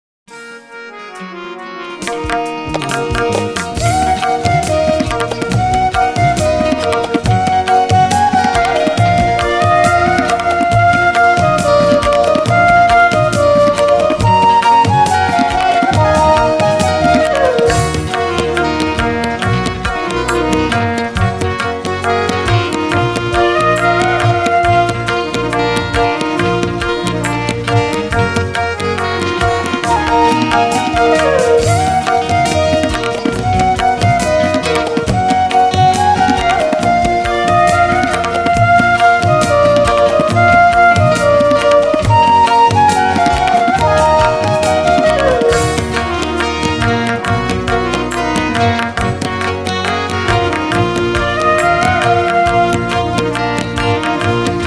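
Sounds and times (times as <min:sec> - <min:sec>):
instrumental music: 0:00.3 - 0:54.6.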